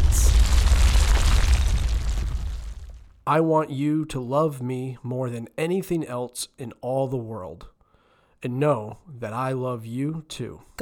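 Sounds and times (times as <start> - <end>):
deep rumbling thunder: 0.0 - 3.2
speech: 3.3 - 7.7, 8.4 - 10.8.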